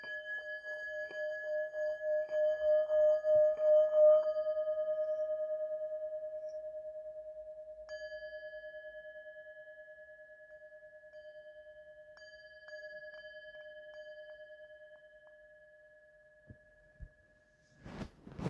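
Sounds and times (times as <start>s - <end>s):
hammered matte Tibetan bowl of seven metals ringing note D: 0.0s - 16.8s.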